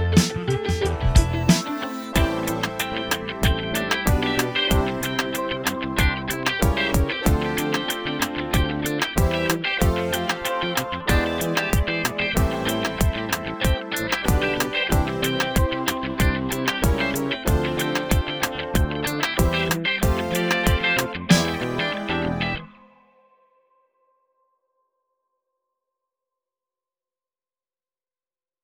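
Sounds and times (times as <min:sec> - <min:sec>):
disco music: 0:00.2 - 0:22.7.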